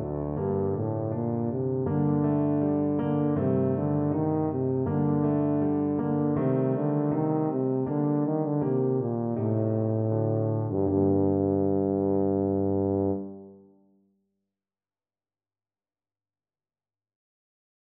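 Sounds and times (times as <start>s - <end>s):
tuba melody: 0.0s - 13.7s.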